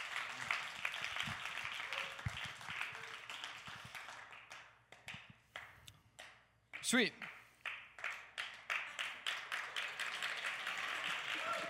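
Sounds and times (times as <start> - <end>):
crowd applauding: 0.0 - 5.2, 7.6 - 11.6
speech: 6.9 - 7.3.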